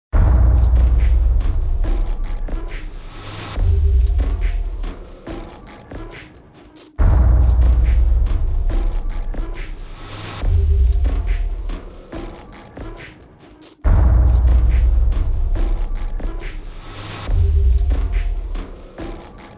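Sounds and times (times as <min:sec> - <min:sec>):
percussion: 0:00.1 - 0:19.5.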